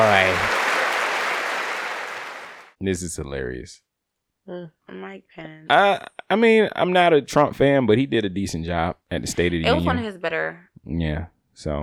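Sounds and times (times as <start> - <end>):
woman clapping: 0.0 - 2.7
speech: 2.8 - 3.9, 4.5 - 11.8.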